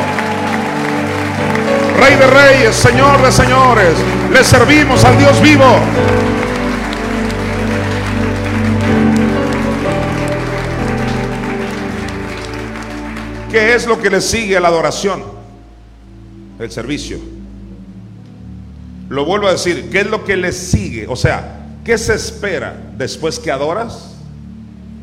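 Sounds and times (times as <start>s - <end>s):
audience applause: 0.0s - 14.4s
speech: 2.0s - 6.4s, 13.5s - 15.3s, 16.6s - 17.4s, 19.1s - 24.1s.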